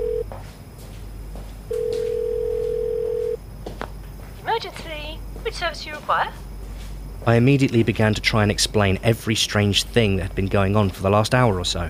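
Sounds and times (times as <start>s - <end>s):
telephone line ringing tone while dialing 999: 0.0s - 0.3s, 1.7s - 3.4s
low hum: 0.0s - 11.8s
speech: 4.6s - 6.4s, 7.2s - 11.8s.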